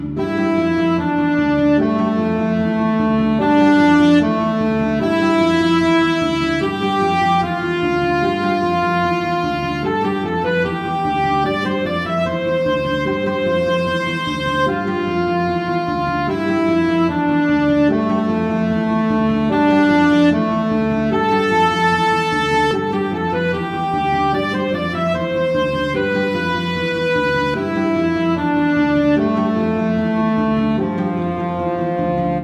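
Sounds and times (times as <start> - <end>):
vigilant battle music: 0.2 - 32.4.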